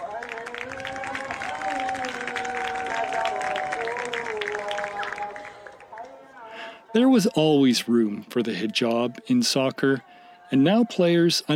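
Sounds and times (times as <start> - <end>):
soccer crowd clapping: 0.0 - 6.5
soccer crowd voices droning: 0.0 - 11.5
speech: 7.0 - 11.5.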